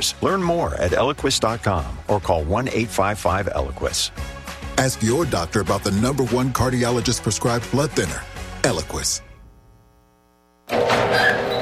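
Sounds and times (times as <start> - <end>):
speech: 0.0 - 9.3
creaking garage door: 10.7 - 11.5.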